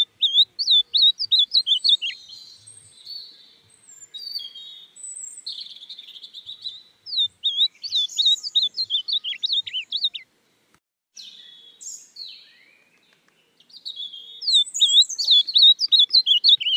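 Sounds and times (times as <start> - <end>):
ultramarine grosbeak Cyanoloxia brissonii looping whistles: 0.0 - 2.2, 7.1 - 10.2, 14.4 - 16.7.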